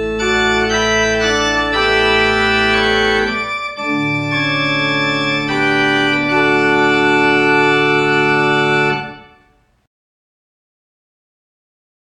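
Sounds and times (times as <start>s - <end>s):
pipe organ: 0.0s - 9.6s.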